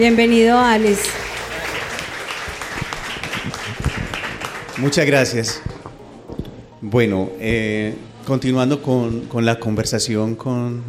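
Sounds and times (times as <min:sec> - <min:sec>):
speech: 0:00.0 - 0:01.3, 0:04.8 - 0:05.7, 0:06.8 - 0:10.8
applause: 0:00.0 - 0:05.8.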